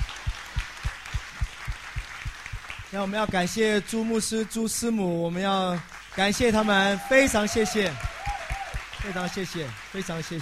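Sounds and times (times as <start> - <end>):
congregation applause at a church service: 0.0 - 4.1, 5.7 - 10.4
speech: 2.9 - 8.1, 9.0 - 10.4.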